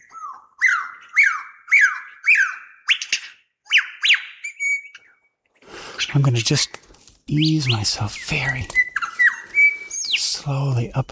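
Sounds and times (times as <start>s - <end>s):
bird shrieking alarm calls: 0.0s - 5.2s, 7.4s - 10.2s
speech: 6.0s - 8.8s, 10.4s - 11.0s.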